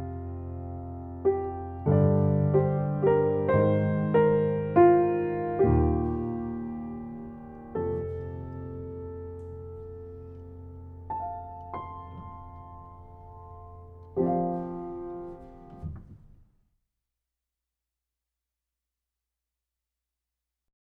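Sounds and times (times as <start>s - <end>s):
piano: 0.0s - 16.6s.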